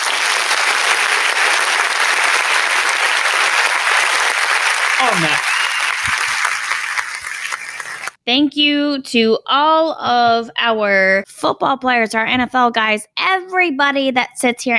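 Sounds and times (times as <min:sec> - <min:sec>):
crowd applauding: 0:00.0 - 0:08.2
speech: 0:05.0 - 0:05.5, 0:08.3 - 0:14.7.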